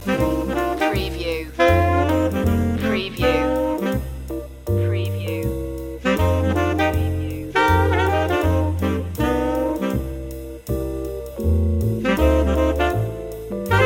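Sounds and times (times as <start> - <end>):
blues loop: 0.0 - 13.8.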